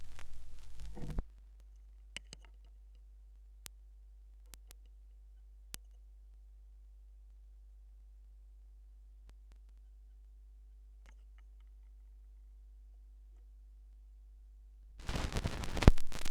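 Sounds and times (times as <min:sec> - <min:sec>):
vinyl record noise: 0:00.0 - 0:01.3, 0:15.0 - 0:16.2.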